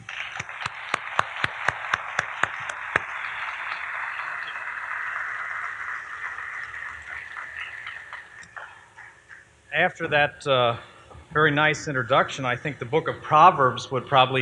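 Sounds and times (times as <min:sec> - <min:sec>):
audience applause: 0:00.0 - 0:09.5
speech: 0:09.8 - 0:14.4.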